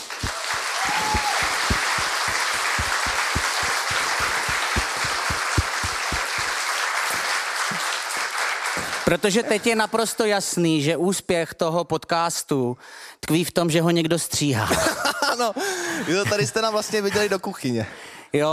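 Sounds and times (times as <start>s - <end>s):
crowd applause: 0.0s - 9.4s
speech: 9.1s - 18.5s.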